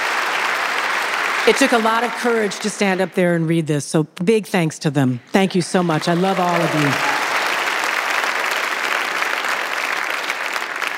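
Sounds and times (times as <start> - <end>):
audience applause: 0.0 - 3.0, 5.7 - 10.9
speech: 1.5 - 7.1.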